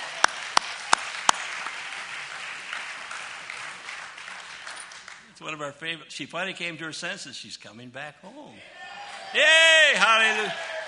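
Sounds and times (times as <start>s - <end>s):
hand claps for a performer: 0.0s - 5.3s
speech: 5.4s - 10.7s.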